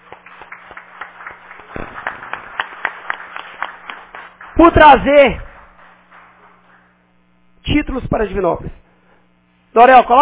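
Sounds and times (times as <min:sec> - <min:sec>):
audience applause: 0:00.0 - 0:06.9
faint steady hum: 0:00.0 - 0:10.2
speech: 0:04.6 - 0:05.5, 0:07.8 - 0:08.8, 0:09.8 - 0:10.2.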